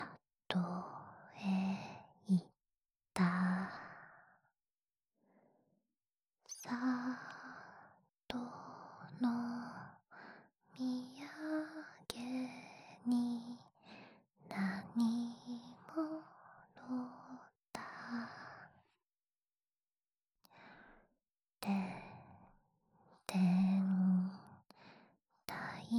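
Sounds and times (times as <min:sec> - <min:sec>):
lullaby: 0:00.0 - 0:02.5, 0:06.5 - 0:18.8, 0:23.2 - 0:25.9.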